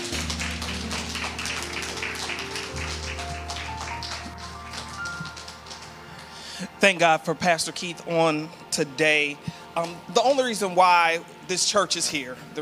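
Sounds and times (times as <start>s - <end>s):
crowd clapping hands in praise: 0.0s - 6.5s, 9.8s - 10.1s
speech: 6.8s - 12.6s.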